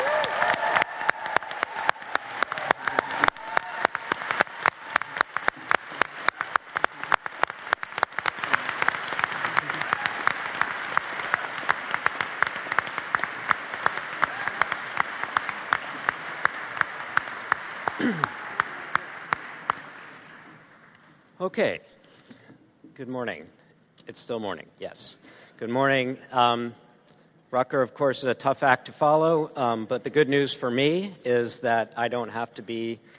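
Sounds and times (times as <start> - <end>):
sustained audience applause for the GSPP class of 2019: 0.0 - 21.0
speech: 21.5 - 21.9, 23.0 - 26.8, 27.5 - 33.1.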